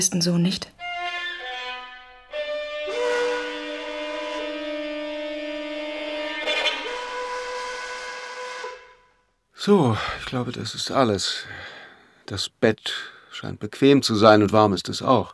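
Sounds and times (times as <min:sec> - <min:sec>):
speech: 0:00.0 - 0:00.8, 0:09.6 - 0:11.7, 0:12.3 - 0:15.3
steam train whistle at a railway station: 0:00.8 - 0:09.3.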